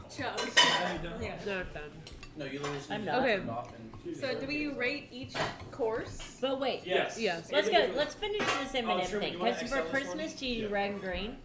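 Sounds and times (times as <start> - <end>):
dishes and cutlery clinking as a bowl is collected after a meal: 0.1 - 6.4, 8.2 - 10.2
speech: 0.2 - 11.4.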